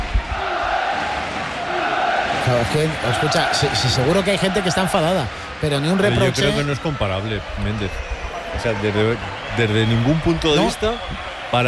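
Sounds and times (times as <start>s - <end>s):
football supporters chanting: 0.0s - 5.0s
football supporters cheering at Mendizorroza stadium: 0.0s - 11.6s
speech: 2.5s - 11.6s.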